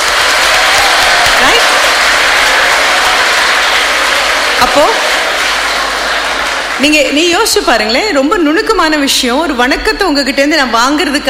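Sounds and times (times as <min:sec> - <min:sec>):
audience clapping: 0:00.0 - 0:08.1
speech: 0:04.8 - 0:05.1, 0:06.8 - 0:11.2.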